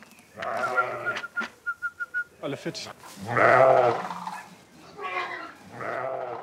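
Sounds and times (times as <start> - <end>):
sheep bleating: 0.4 - 1.3, 3.2 - 6.4
speech: 2.4 - 4.2.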